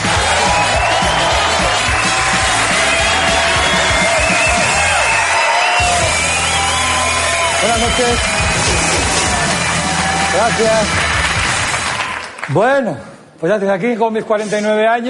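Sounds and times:
audience applause: 0.0s - 12.6s
speech: 8.0s - 8.3s, 10.4s - 11.0s, 12.5s - 15.0s.

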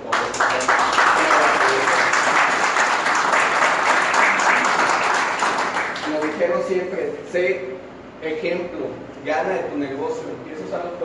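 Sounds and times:
audience applause: 0.0s - 6.5s
speech: 6.7s - 11.0s.

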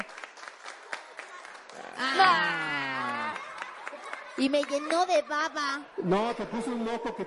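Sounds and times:
applause: 0.0s - 5.5s
speech: 4.4s - 7.2s.

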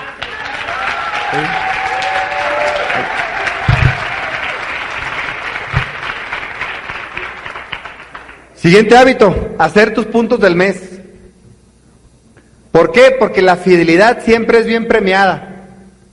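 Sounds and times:
crowd cheers and voices: 0.0s - 7.4s
crowd applause: 0.0s - 8.5s
speech: 1.3s - 1.6s, 8.6s - 10.8s, 12.8s - 15.5s.

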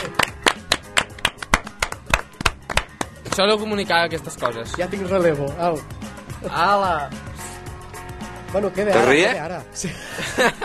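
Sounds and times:
clapping applause: 0.0s - 3.7s
speech: 3.4s - 7.3s, 8.5s - 10.6s
laughter: 9.8s - 10.6s.

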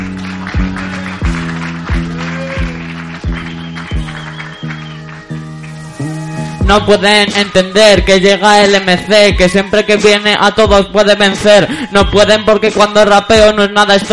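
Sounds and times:
audience applause: 0.0s - 6.0s
speech: 6.7s - 14.1s.

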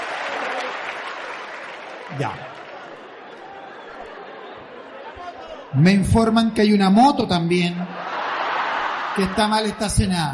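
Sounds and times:
audience applause: 0.0s - 5.0s, 7.9s - 9.8s
speech: 2.1s - 2.6s, 5.7s - 7.9s, 9.2s - 10.3s.

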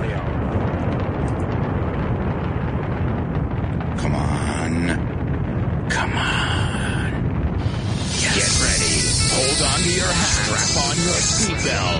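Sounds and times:
rocket launch liftoff roar: 0.0s - 11.9s
high whining tone: 7.6s - 11.9s.

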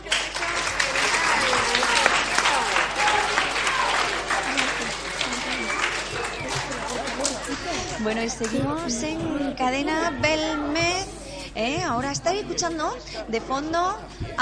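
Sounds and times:
audience applause: 0.0s - 9.2s
laughter: 0.7s - 11.6s
speech: 8.0s - 14.3s.

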